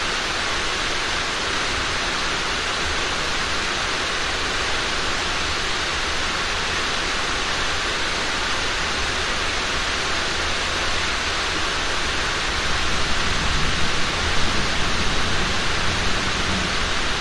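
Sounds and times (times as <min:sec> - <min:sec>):
heavy rain on warehouse roof: 0:00.0 - 0:17.1
traffic outside: 0:12.6 - 0:17.1
thunder: 0:12.7 - 0:17.1.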